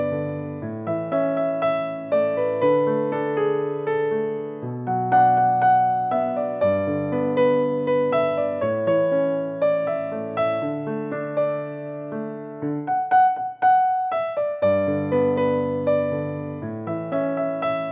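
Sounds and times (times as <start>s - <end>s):
piano music: 0.0s - 17.9s.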